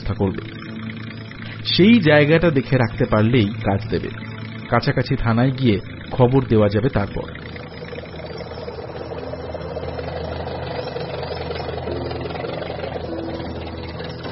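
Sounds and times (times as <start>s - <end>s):
lorry engine running: 0.0s - 14.2s
speech: 0.1s - 0.6s, 1.6s - 7.4s.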